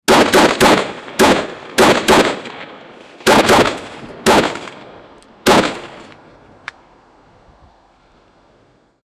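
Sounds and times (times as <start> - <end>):
A-10 Warthog aircraft cannon firing in warfare: 0.1 - 6.1.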